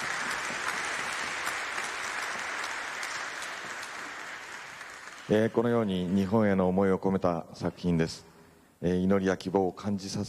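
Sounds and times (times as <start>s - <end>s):
audience applause: 0.0s - 6.3s
speech: 5.3s - 10.2s.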